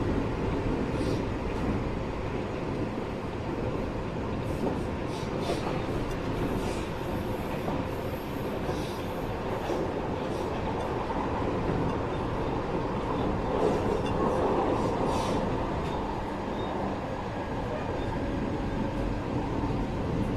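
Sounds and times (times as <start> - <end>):
E257-500 electric train: 0.0 - 20.3.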